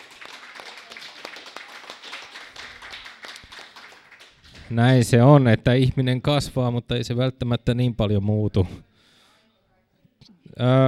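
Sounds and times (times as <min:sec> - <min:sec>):
audience applause: 0:00.0 - 0:04.8
speech: 0:04.7 - 0:08.9, 0:10.6 - 0:10.8.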